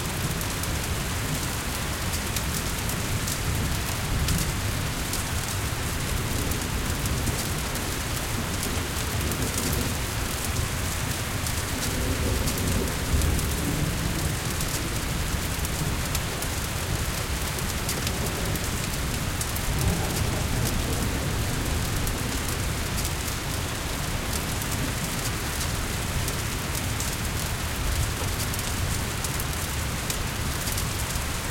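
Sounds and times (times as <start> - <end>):
fire in Sarai: 0.0 - 31.5.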